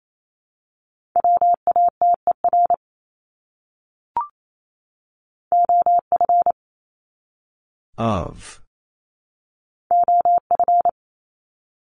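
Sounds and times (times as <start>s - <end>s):
Morse code beeps at 28 wpm: 1.2s - 2.8s, 5.5s - 6.5s, 9.9s - 10.9s
speech: 8.0s - 8.6s.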